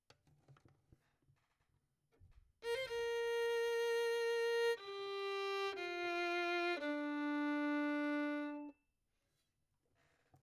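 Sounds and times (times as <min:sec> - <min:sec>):
violin: 0:02.6 - 0:08.8.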